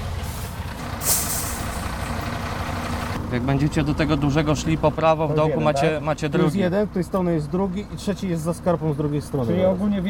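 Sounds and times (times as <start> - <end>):
heavy fire engine idling: 0.0 - 6.1
fire engine air-brake hiss: 0.3 - 1.8
speech: 3.3 - 10.0.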